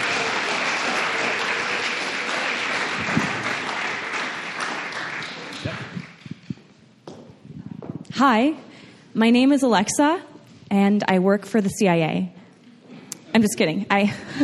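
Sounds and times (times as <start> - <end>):
audience applause: 0.0 - 6.6
speech: 8.2 - 12.4, 13.3 - 14.4.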